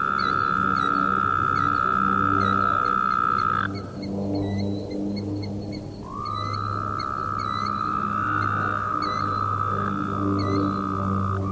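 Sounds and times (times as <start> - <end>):
Woodhouse's toad chorus of buzzy trills: 0.0 - 11.5.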